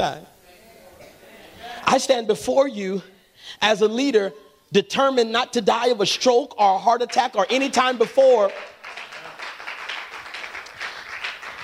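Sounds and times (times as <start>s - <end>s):
speech: 0.0s - 0.3s, 1.9s - 8.8s
audience applause: 8.5s - 11.6s.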